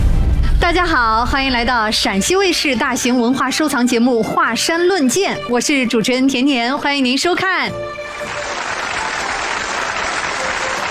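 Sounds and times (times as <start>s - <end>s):
speech: 0.7s - 8.4s
studio audience applause: 8.0s - 10.9s.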